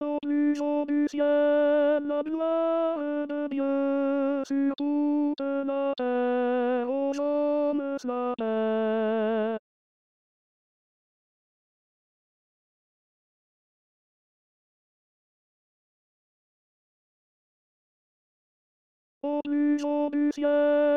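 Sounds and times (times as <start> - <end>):
tenor singing: 0.0 - 9.6, 19.2 - 20.9.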